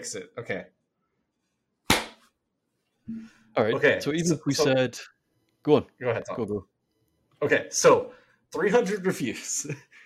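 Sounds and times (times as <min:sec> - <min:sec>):
speech: 0:00.0 - 0:00.8, 0:03.1 - 0:06.7, 0:07.4 - 0:10.0
hand clap for audio sync: 0:01.9 - 0:02.2.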